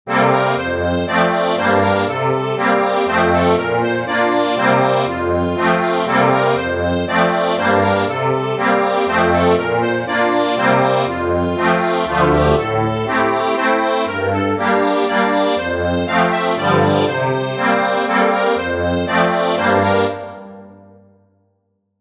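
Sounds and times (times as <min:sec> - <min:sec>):
accordion: 0:00.1 - 0:21.0.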